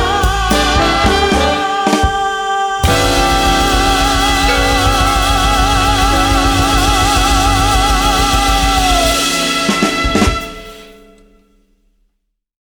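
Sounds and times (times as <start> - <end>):
jazz vocalist singing: 0.0 - 10.9.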